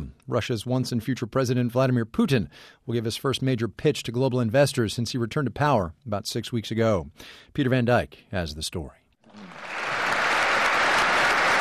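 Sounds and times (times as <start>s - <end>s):
speech: 0.3s - 9.7s
applause for Vladimir Putin at an investor forum: 9.3s - 11.6s.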